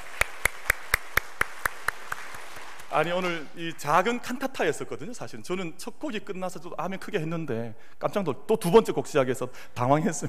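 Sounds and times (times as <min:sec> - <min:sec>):
audience applauding the choir: 0:00.0 - 0:03.4
speech: 0:02.9 - 0:10.2.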